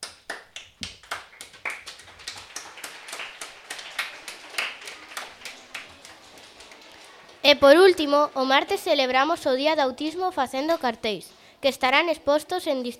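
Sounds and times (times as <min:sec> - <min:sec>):
applause: 0:00.0 - 0:09.3
speech: 0:07.5 - 0:12.9.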